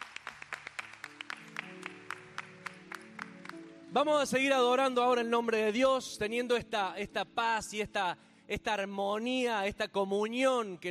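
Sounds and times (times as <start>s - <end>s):
audience's welcoming applause: 0.0s - 3.9s
speech: 3.9s - 10.8s.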